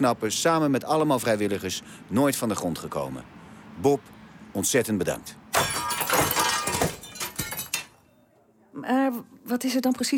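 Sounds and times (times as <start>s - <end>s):
speech: 0.0s - 5.8s, 8.8s - 10.1s
window pane smashing: 5.5s - 8.1s
falling glass tinkling: 5.6s - 8.1s.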